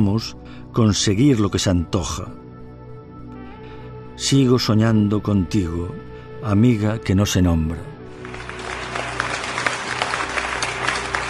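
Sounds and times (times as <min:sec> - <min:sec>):
speech: 0:00.0 - 0:02.4, 0:04.2 - 0:07.9
audience applause after a recital: 0:08.1 - 0:11.2.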